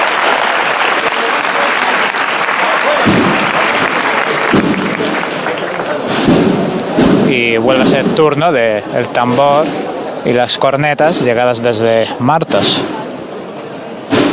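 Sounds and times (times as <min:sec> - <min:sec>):
audience applause: 0:00.0 - 0:06.7
speech: 0:07.4 - 0:13.0.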